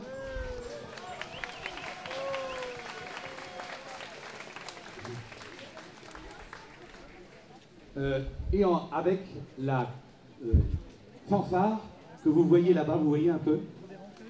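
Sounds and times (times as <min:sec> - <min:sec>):
audience applause: 0:00.0 - 0:07.5
speech: 0:08.0 - 0:13.8.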